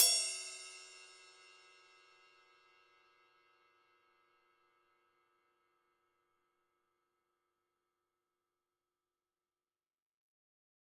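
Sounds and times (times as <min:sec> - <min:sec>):
ride cymbal: 0:00.0 - 0:01.6.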